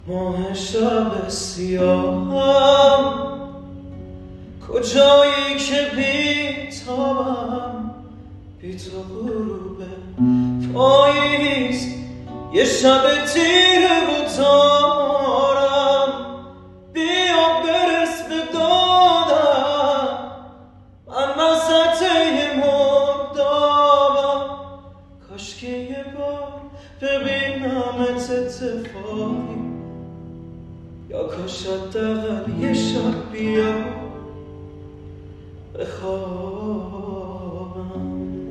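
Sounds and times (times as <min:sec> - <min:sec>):
guitar: 0:00.0 - 0:38.5.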